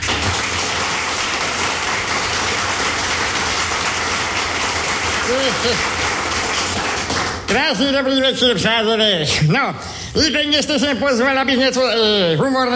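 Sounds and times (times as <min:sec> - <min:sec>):
audience applause: 0:00.0 - 0:07.5
speech: 0:05.3 - 0:06.0, 0:07.5 - 0:12.7.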